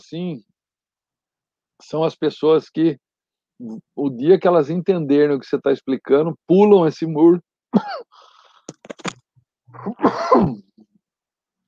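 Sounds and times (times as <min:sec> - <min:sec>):
speech: 0:00.0 - 0:00.5, 0:01.8 - 0:03.0, 0:03.6 - 0:08.3, 0:09.7 - 0:10.7
person coughing: 0:07.8 - 0:08.2, 0:09.8 - 0:10.6
throat clearing: 0:09.7 - 0:10.7.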